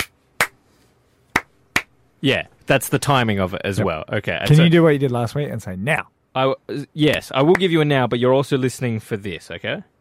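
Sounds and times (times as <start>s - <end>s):
single hand clap: 0.0s - 0.6s, 1.3s - 1.9s
speech: 2.2s - 9.9s.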